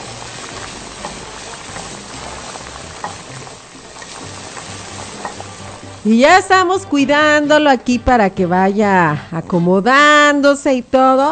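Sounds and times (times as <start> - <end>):
breaded milanesa de migajón coated in egg and breadcrumbs frying in hot oil: 0.0 - 6.1
speech: 6.0 - 11.2.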